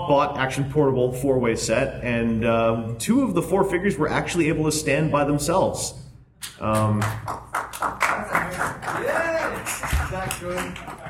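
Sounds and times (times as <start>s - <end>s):
speech: 0.1s - 6.0s, 6.6s - 7.4s
applause: 6.8s - 11.0s.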